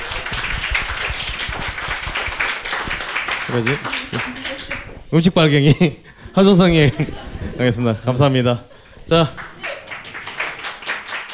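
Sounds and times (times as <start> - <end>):
applause: 0.0 - 5.0, 9.2 - 11.3
speech: 3.5 - 4.5, 5.1 - 9.5
laughter: 3.5 - 10.2.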